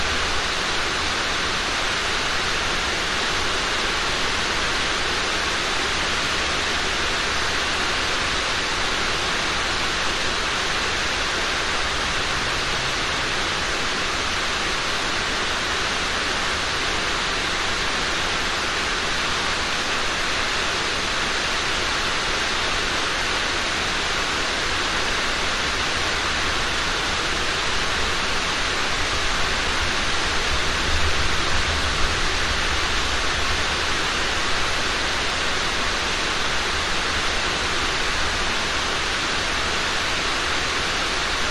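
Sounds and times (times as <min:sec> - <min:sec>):
heavy rain on warehouse roof: 0:00.0 - 0:41.4
traffic outside: 0:11.9 - 0:13.6.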